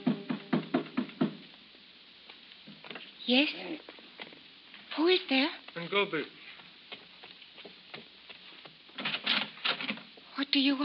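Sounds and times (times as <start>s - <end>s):
knocking on a door: 0.0s - 1.4s
speech: 3.3s - 4.0s, 5.0s - 6.4s, 10.5s - 10.8s.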